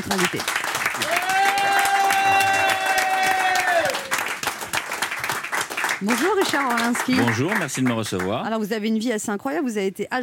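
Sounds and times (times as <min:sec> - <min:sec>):
speech: 0:00.0 - 0:01.4, 0:06.0 - 0:10.2
audience applause: 0:00.0 - 0:08.4.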